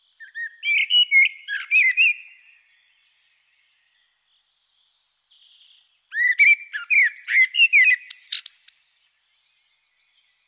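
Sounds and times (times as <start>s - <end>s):
Eurasian blackbird singing: 0.2s - 3.0s, 3.8s - 8.9s.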